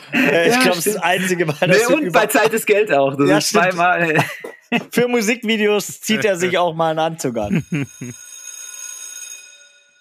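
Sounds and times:
laughter: 0:00.0 - 0:06.7, 0:07.4 - 0:08.2
speech: 0:00.1 - 0:08.3
school bell ringing: 0:07.7 - 0:09.9.

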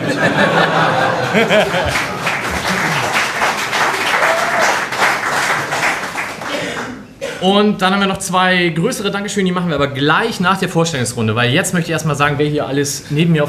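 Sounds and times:
laughter: 0:00.0 - 0:03.4
speech: 0:00.2 - 0:02.3, 0:07.4 - 0:13.4
audience applause: 0:00.7 - 0:07.0.

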